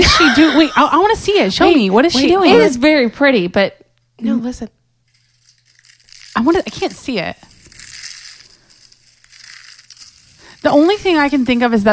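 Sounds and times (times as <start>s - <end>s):
speech: 0.2s - 4.8s, 6.4s - 7.5s, 10.6s - 11.9s
hands crunching soap curls: 5.1s - 11.9s.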